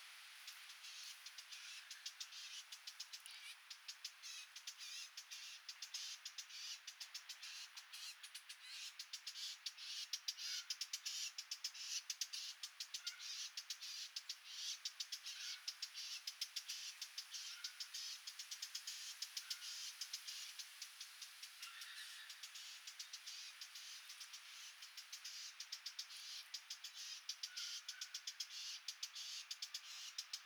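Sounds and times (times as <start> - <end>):
steady hiss: 0.0 - 6.3, 13.4 - 30.4
Eurasian blackcap ticking calls: 0.8 - 30.4.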